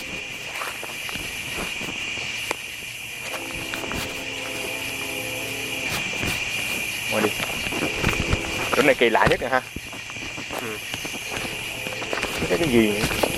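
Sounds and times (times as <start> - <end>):
faint low hum: 0.0 - 13.3
human footsteps crunching in a forest: 0.0 - 13.3
insects buzzing: 0.0 - 13.3
speech: 8.8 - 9.8, 12.5 - 13.2.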